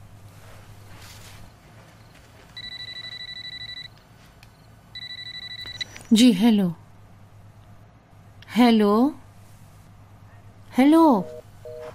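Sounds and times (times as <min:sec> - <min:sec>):
low hum: 0:00.0 - 0:11.9
telephone ringing: 0:02.6 - 0:04.0, 0:05.0 - 0:06.0, 0:11.2 - 0:11.9
speech: 0:06.1 - 0:06.8, 0:08.6 - 0:09.2, 0:10.8 - 0:11.4.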